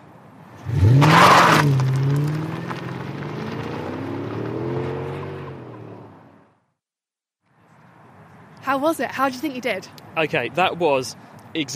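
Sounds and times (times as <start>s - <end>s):
car accelerating at high speed: 0.6s - 6.6s
speech: 8.7s - 11.7s.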